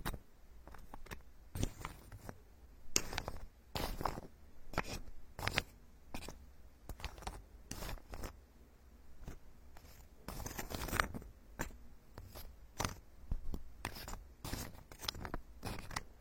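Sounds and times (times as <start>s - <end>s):
faint steady hiss: 0.0s - 16.1s
ear picking and ear massage scratching strokes: 3.0s - 8.4s, 9.2s - 16.1s.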